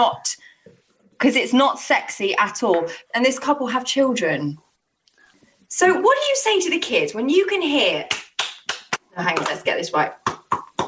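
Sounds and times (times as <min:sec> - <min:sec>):
speech: 0:00.0 - 0:00.4, 0:01.2 - 0:04.7, 0:05.7 - 0:08.2, 0:09.2 - 0:10.3
sharp loud hand claps imitating sex: 0:08.1 - 0:09.6, 0:10.2 - 0:10.8.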